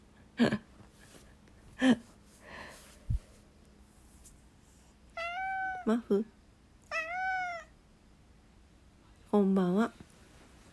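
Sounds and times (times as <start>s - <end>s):
speech: 0.4s - 0.6s, 1.8s - 2.0s, 5.9s - 6.4s
cat meowing: 5.2s - 5.9s, 6.9s - 7.7s.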